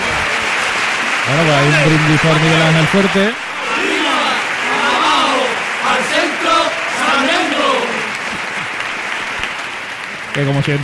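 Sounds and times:
audience applause: 0:00.0 - 0:10.8
speech: 0:01.3 - 0:03.4, 0:10.4 - 0:10.8.

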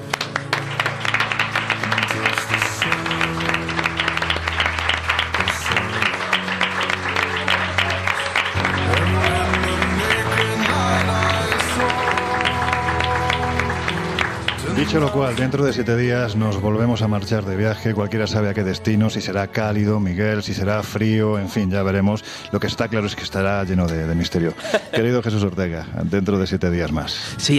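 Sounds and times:
audience applause: 0:00.0 - 0:16.0
speech: 0:14.9 - 0:27.5
laughter: 0:24.4 - 0:25.5.

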